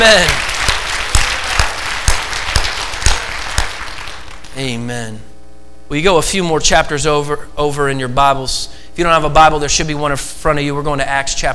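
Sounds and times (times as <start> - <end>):
speech: 0.0 - 0.4, 4.6 - 5.3, 5.9 - 11.5
audience applauding: 0.0 - 4.6.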